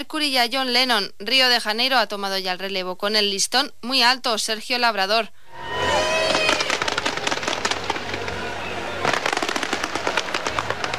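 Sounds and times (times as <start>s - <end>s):
speech: 0.0s - 5.8s
crowd roar: 5.5s - 10.9s
fireworks crackling and popping at closing ceremony: 5.8s - 10.9s.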